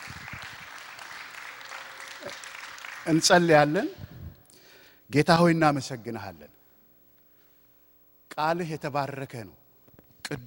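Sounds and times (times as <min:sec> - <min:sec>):
church congregation clapping for the Lord: 0:00.0 - 0:04.1
speech: 0:02.2 - 0:04.1, 0:05.1 - 0:06.6, 0:08.4 - 0:09.6, 0:10.3 - 0:10.4.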